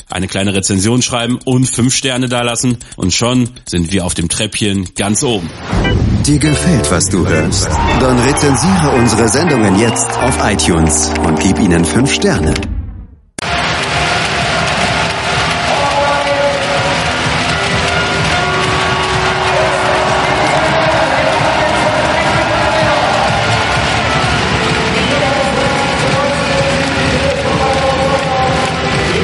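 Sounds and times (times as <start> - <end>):
speech: 0.1 - 12.7
TSV Hannover-Burgdorf fans cheering a handball win at Final Four 2018 in Hamburg: 7.1 - 12.5, 13.4 - 29.2.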